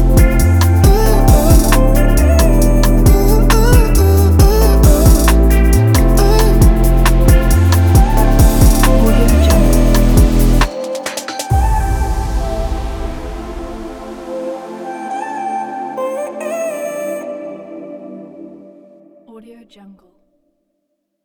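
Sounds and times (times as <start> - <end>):
lofi beat: 0.0 - 12.0.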